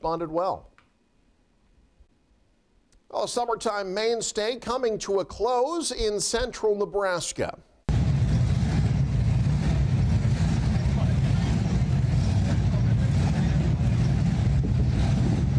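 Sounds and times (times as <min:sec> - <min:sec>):
speech: 0:00.0 - 0:00.7, 0:03.1 - 0:07.7
classic hot rod engines revving: 0:07.9 - 0:15.5
outdoor commotion: 0:07.9 - 0:15.5
voices: 0:10.5 - 0:14.8.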